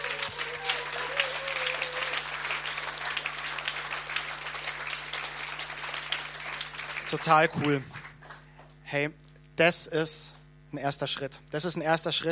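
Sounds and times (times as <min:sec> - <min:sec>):
audience applause: 0:00.0 - 0:08.4
speech: 0:07.1 - 0:08.0, 0:08.9 - 0:12.3.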